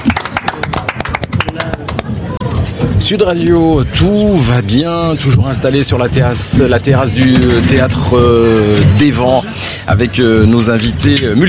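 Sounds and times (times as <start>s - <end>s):
audience applause: 0.0s - 2.4s
speech: 3.1s - 11.4s.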